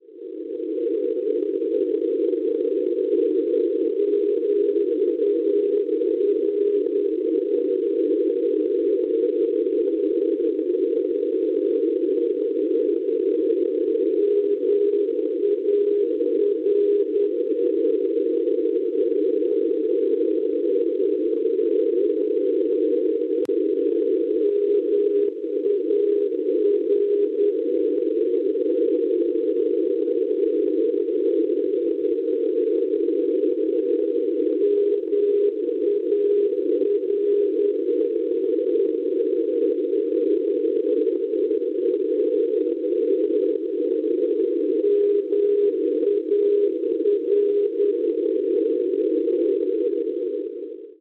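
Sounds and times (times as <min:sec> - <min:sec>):
non-directional radio beacon signal on 383 kHz: 0:00.2 - 0:50.9.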